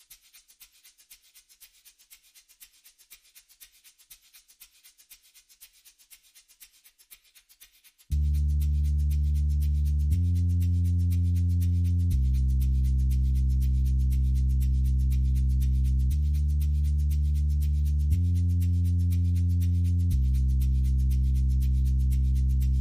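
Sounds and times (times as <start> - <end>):
percussion: 0.0 - 22.7
bass: 8.1 - 22.7.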